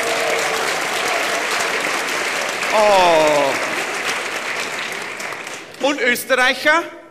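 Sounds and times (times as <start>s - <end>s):
audience clapping: 0.0s - 7.0s
speech: 2.8s - 3.1s, 5.8s - 7.0s.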